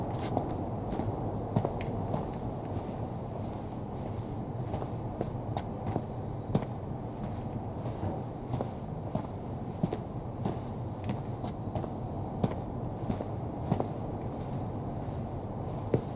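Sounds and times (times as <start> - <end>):
footsteps: 0.1 - 16.1.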